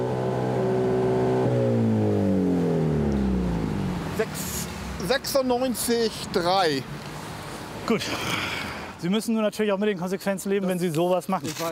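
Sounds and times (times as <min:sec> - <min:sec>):
car exhaust with flap opened revving: 0:00.0 - 0:05.3
speech: 0:04.2 - 0:07.0, 0:07.9 - 0:11.6.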